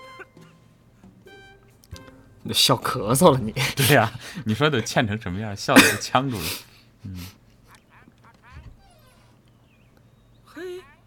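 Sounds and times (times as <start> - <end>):
speech: 2.4 - 7.4
parrot kept for company squawking and chattering: 7.6 - 11.0.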